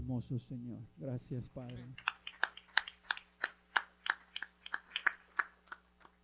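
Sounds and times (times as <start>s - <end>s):
speech: 0.3s - 2.1s
audience clapping in rhythm: 1.7s - 6.2s.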